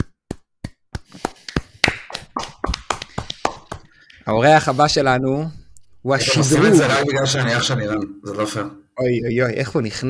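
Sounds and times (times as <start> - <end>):
people clapping hands in a studio: 1.0 - 4.1
speech: 4.3 - 10.0.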